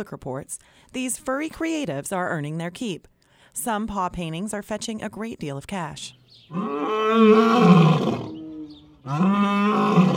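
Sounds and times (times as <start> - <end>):
speech: 0.0 - 8.4, 9.0 - 10.1
African lions roaring on a cold sunny afternoon: 6.5 - 10.1.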